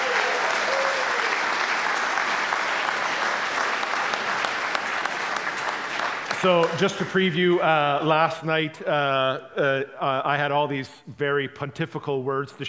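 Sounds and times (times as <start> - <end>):
church congregation applause welcoming a new staff member and family: 0.0 - 8.0
speech: 6.4 - 12.6.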